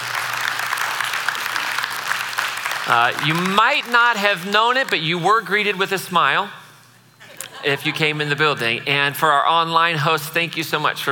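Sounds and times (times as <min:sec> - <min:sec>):
group applauding: 0:00.0 - 0:05.0
speech: 0:02.9 - 0:06.6, 0:07.6 - 0:11.1
laughter: 0:07.2 - 0:08.4.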